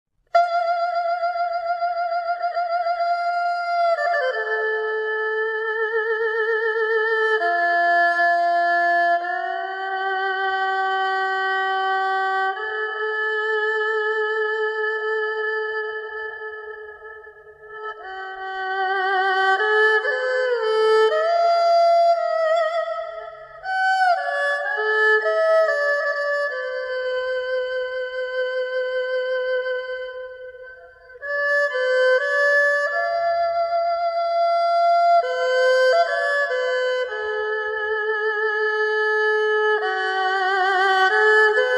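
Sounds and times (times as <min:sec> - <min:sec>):
erhu: 0:00.2 - 0:41.7.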